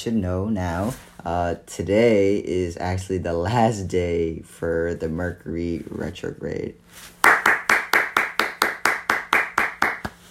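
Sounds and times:
speech: 0.0 - 7.1
hands clapping: 7.2 - 10.2.

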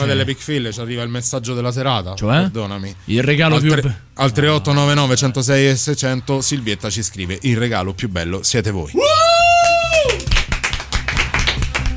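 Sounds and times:
speech: 0.0 - 10.0
hosts clapping their hands in studio: 9.4 - 11.9.

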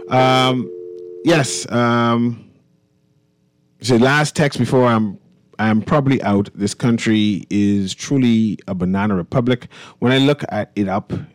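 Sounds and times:
speech: 0.1 - 2.5, 3.8 - 11.3
telephone dial tone after a caller has hung up: 0.6 - 1.3.

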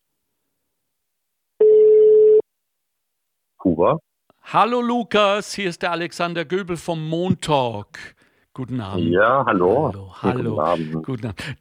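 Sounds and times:
telephone ringing tone heard over the line: 1.6 - 2.4
speech: 3.6 - 11.5.

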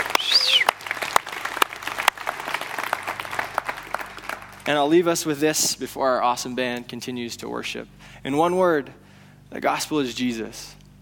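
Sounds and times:
church audience clapping and cheering: 0.0 - 4.9
speech: 4.7 - 10.8.

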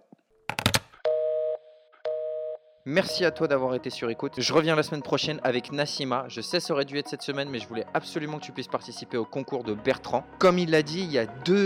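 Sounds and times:
telephone tone after call hang-up: 1.1 - 2.6
speech: 2.8 - 11.6.

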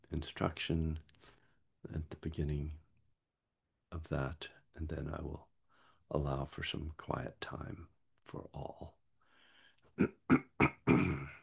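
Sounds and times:
speech: 0.2 - 2.8, 3.9 - 5.5, 6.1 - 9.0, 10.0 - 10.5
person clearing throat: 10.0 - 11.4.

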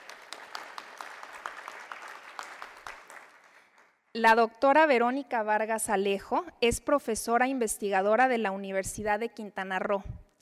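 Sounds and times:
audience applause: 0.0 - 3.9
speech: 4.2 - 10.2.

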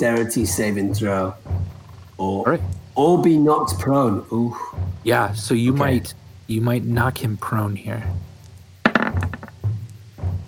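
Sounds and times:
speech: 0.0 - 1.5, 2.2 - 8.3
dice rolled across a hard surface: 8.8 - 9.6.

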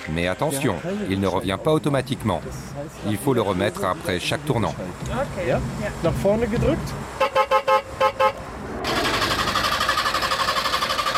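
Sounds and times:
Trabant car engine: 0.0 - 11.1
speech: 0.1 - 7.4
Trabant car horn: 7.2 - 8.5.

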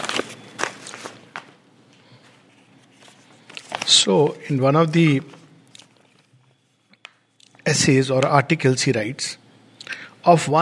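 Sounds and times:
papers being taken out and handled: 0.0 - 7.2
speech: 3.9 - 5.4, 7.8 - 9.4, 10.2 - 10.6.

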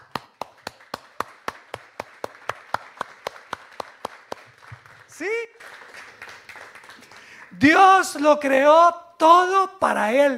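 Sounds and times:
hand clapping: 0.0 - 7.5
speech: 5.2 - 5.8, 7.6 - 10.3.

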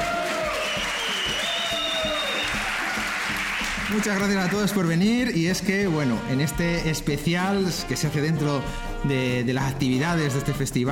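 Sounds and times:
audience applause: 0.0 - 5.0
speech: 3.9 - 10.9.

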